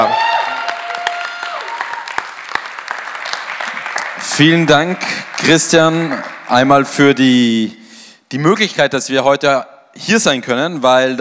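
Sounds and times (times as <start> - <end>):
audience applause: 0.0 - 7.0
speech: 4.4 - 11.1.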